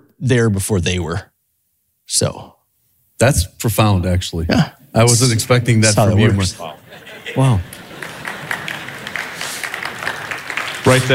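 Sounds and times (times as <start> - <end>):
speech: 0.2 - 1.3, 2.1 - 2.6, 3.2 - 7.8, 10.9 - 11.1
laughter: 6.2 - 11.1
Dayspring students clapping: 7.6 - 11.1.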